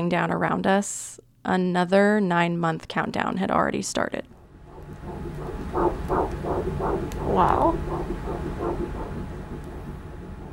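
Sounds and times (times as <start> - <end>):
speech: 0.0 - 4.4, 5.7 - 8.1
baby's heartbeat on ultrasound: 4.4 - 10.5.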